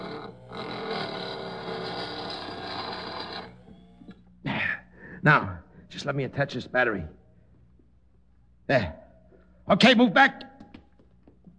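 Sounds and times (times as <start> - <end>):
power drill drilling a hole: 0.0 - 4.3
speech: 5.2 - 7.2, 8.7 - 9.0, 9.7 - 10.5.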